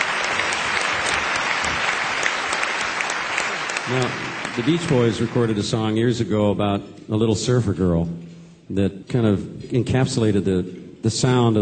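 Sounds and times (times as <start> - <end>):
audience applause: 0.0 - 6.0
speech: 3.9 - 11.6.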